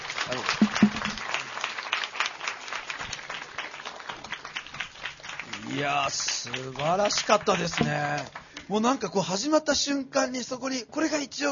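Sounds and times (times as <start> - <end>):
audience applauding: 0.0 - 8.7
speech: 5.8 - 11.5.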